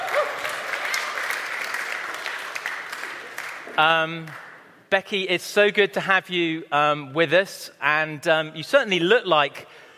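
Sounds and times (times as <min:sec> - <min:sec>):
audience applause welcoming a visiting doctor: 0:00.0 - 0:04.6
speech: 0:03.8 - 0:09.9.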